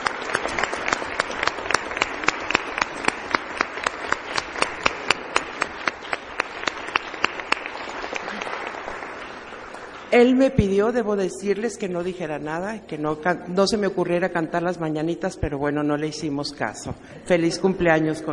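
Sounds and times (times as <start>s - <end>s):
applause: 0.0s - 11.1s
speech: 10.1s - 18.3s.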